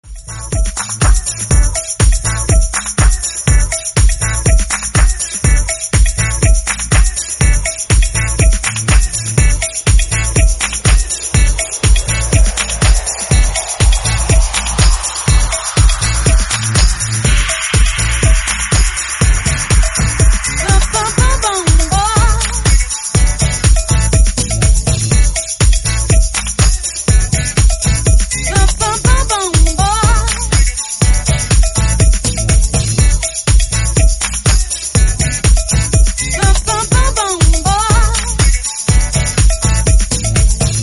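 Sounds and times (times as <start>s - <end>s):
raw house music mix: 0.0s - 40.8s.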